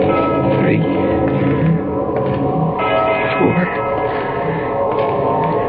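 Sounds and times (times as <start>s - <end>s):
deep church bell striking the hour: 0.1s - 1.8s, 2.8s - 5.6s.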